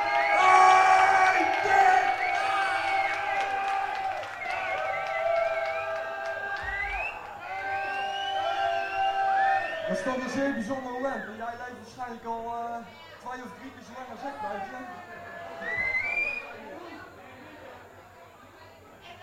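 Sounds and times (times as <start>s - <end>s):
cheering: 0.0s - 11.4s, 14.2s - 16.6s
applause: 1.1s - 10.0s
speech: 10.0s - 15.9s.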